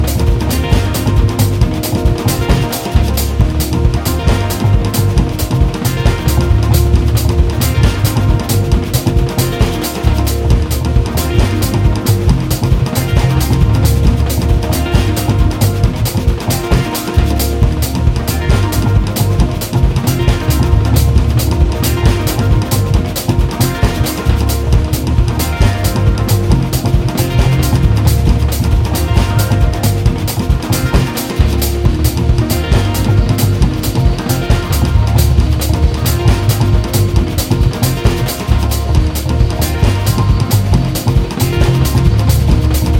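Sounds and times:
dance drumming: 0.0s - 42.9s.

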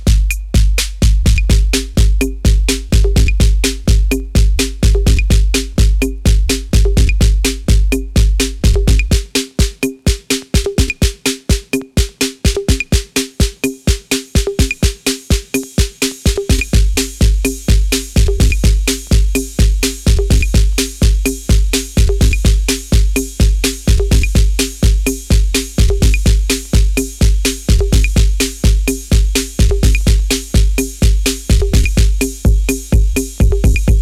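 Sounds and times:
drums: 0.0s - 34.0s.

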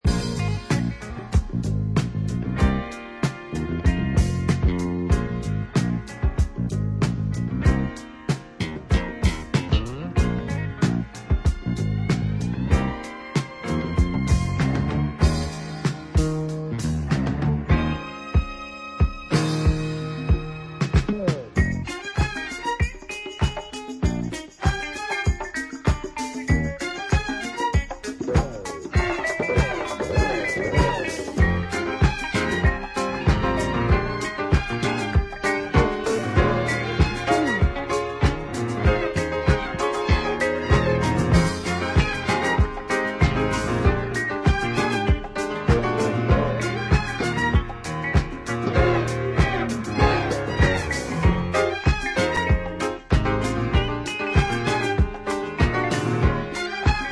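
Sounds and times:
low slung disco music: 0.0s - 57.1s.

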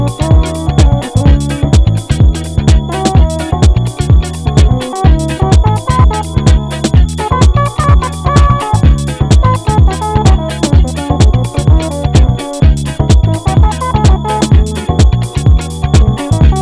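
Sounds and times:
Moog synthesizer instrumental music: 0.0s - 16.5s.

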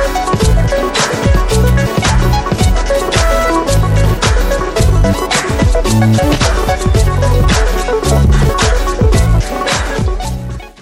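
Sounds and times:
clap: 0.0s - 1.4s, 2.0s - 3.6s, 4.2s - 6.9s, 7.5s - 10.1s.

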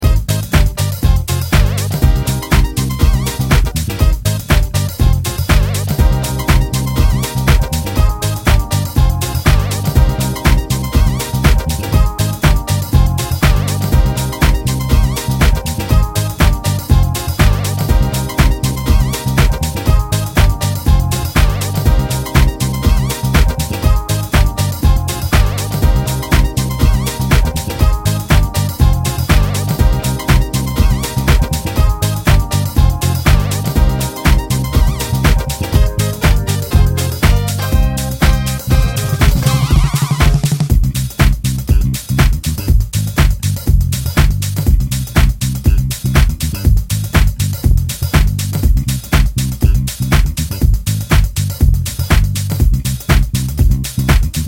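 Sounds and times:
dub instrumental: 0.0s - 54.4s.

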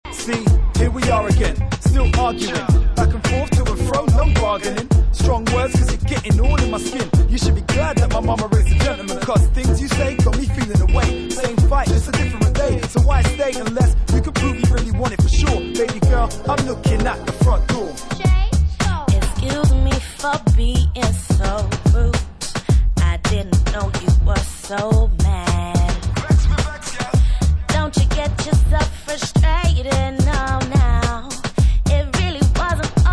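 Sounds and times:
vocals: 0.0s - 33.1s.

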